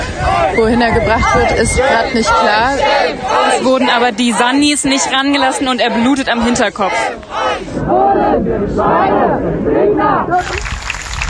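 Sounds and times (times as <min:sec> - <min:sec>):
speech: 0:00.6 - 0:10.8
crowd applauding: 0:10.3 - 0:11.2.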